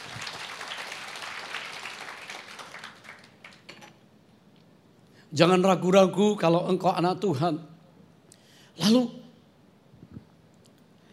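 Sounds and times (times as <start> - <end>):
audience applause: 0.0 - 3.9
speech: 5.3 - 7.7, 8.8 - 9.2.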